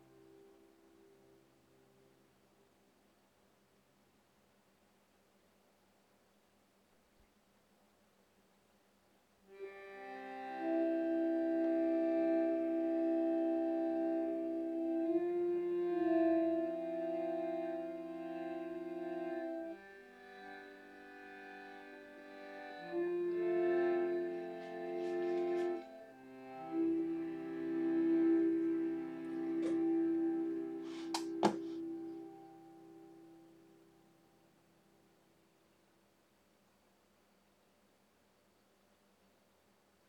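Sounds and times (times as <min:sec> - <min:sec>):
travel harmonium: 0:00.0 - 0:02.2, 0:09.5 - 0:35.2.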